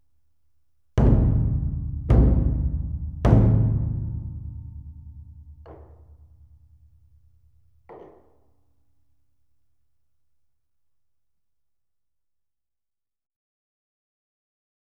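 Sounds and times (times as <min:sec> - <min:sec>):
O-Daiko big drum hits: 0:01.0 - 0:06.2.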